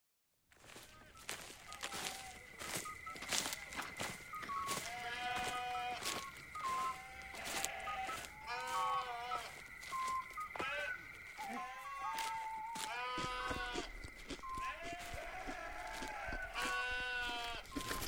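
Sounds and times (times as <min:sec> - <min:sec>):
clicking footsteps: 0:00.6 - 0:18.0
sheep bleating: 0:04.7 - 0:09.6, 0:10.5 - 0:17.9.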